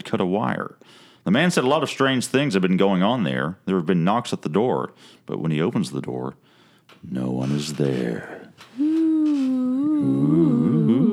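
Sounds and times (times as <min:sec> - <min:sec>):
speech: 0:00.1 - 0:08.9, 0:10.0 - 0:11.0
people imitating spooky ghost moans: 0:08.8 - 0:11.1.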